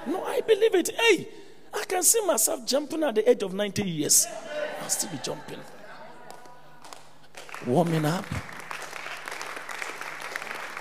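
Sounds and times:
speech: 0:00.0 - 0:05.8, 0:07.6 - 0:08.5
audience clapping: 0:06.2 - 0:10.7.

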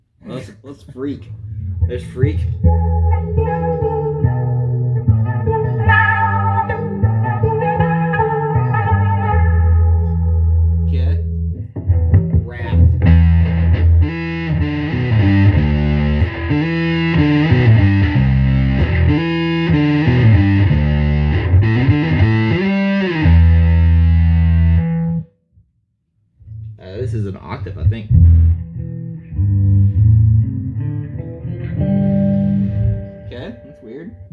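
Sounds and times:
speech: 0:00.4 - 0:03.7
heavily fuzzed phased guitar or synth riff through jet phaser fuzz pedal: 0:01.2 - 0:25.3, 0:26.5 - 0:34.3.

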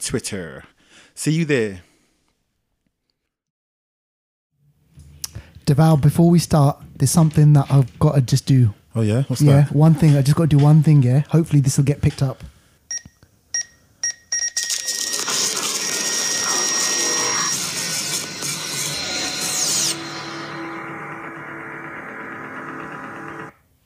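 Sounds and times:
speech: 0:00.0 - 0:01.9, 0:05.7 - 0:12.5
fax machine screeching with whining tones: 0:14.6 - 0:23.5.

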